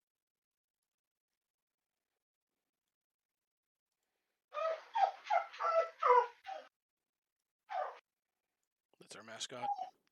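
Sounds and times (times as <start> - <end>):
dog whimpering to be let out: 4.6 - 6.7, 7.7 - 8.0, 9.6 - 10.0
speech: 9.1 - 10.0.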